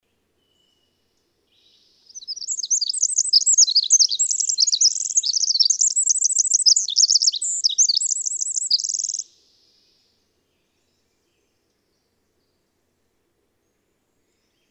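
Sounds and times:
twittering bird song with short trills: 1.9 - 9.8.

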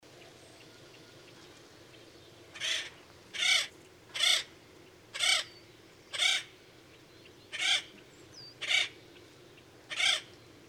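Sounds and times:
bird giving loud harsh raspy cawing calls: 2.6 - 4.5, 5.1 - 5.5, 6.1 - 6.5, 7.5 - 7.9, 8.6 - 9.0, 9.9 - 10.3.

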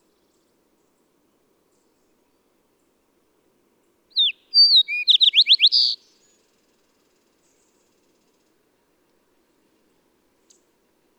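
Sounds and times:
songbird singing: 4.1 - 8.4.

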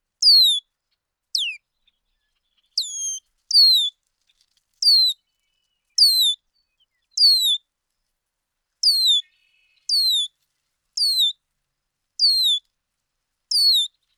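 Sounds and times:
bird song of high descending whistled phrases: 0.2 - 0.6, 1.4 - 1.6, 2.6 - 3.9, 4.8 - 5.2, 6.0 - 7.6, 8.8 - 10.3, 11.0 - 11.3, 12.2 - 12.6, 13.5 - 14.0.

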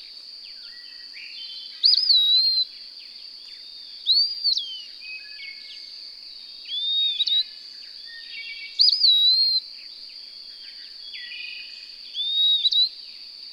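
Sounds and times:
bird song of clear whistled phrases with warbled start and gliding tail: 0.6 - 2.7, 3.4 - 5.9, 6.7 - 9.6, 10.4 - 13.0.

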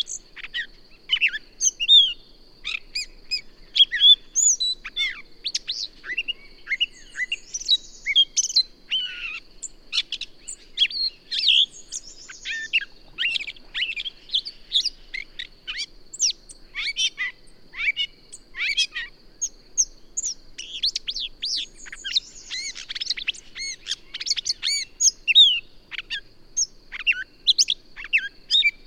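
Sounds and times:
bird song: 0.0 - 28.8.

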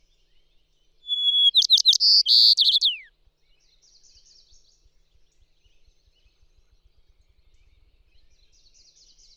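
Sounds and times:
bird song with whistle, chirps, buzzy trills and descending slur: 0.0 - 9.3.

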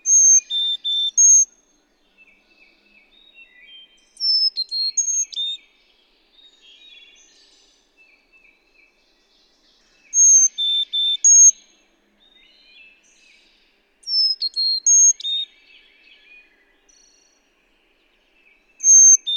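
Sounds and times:
bird song phrase of clear whistled notes: 0.0 - 1.5, 3.2 - 5.7, 10.0 - 11.6, 14.1 - 17.4, 18.6 - 19.3.

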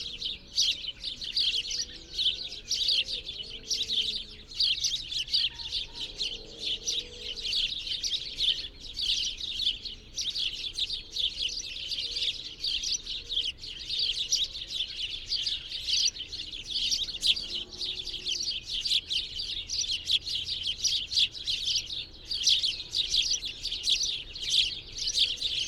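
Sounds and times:
birds twittering: 0.0 - 25.6.

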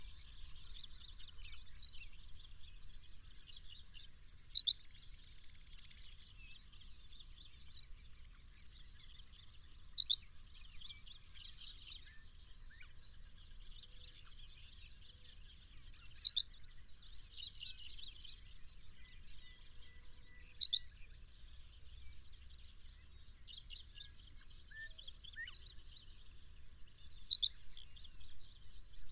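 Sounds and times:
bird song: 0.0 - 29.1.

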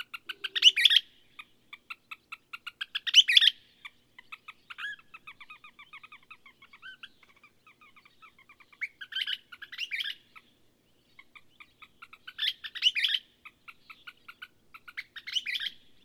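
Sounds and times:
bird twittering song with buzzy bursts: 0.0 - 16.0.

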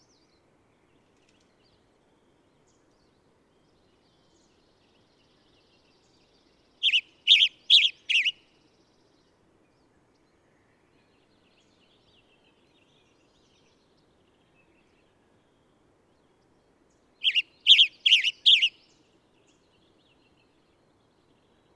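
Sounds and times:
bird song with loud warbled chirping phrases: 6.8 - 8.4, 17.2 - 18.8.

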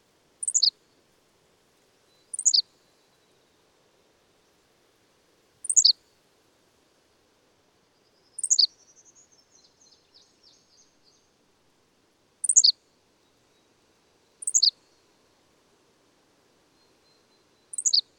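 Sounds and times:
bird twittering: 0.4 - 0.7, 2.3 - 2.6, 5.7 - 5.9, 8.4 - 8.7, 12.5 - 12.7, 14.5 - 14.7, 17.7 - 18.0.

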